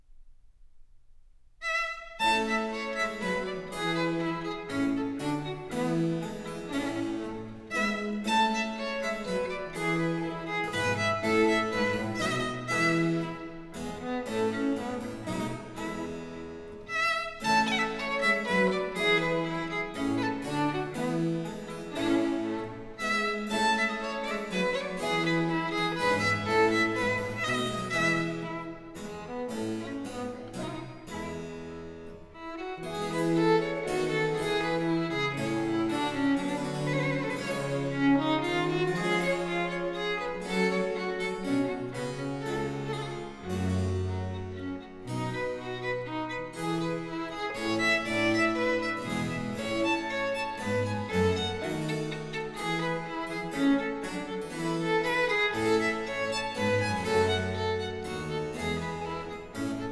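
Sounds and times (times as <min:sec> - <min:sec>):
viol sonata in B-flat major: 0:01.6 - 0:59.9.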